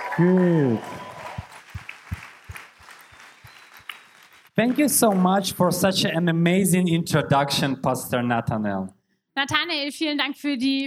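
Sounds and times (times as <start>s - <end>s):
audience clapping in rhythm for the band: 0.0s - 6.2s
speech: 0.2s - 1.1s, 4.6s - 10.8s.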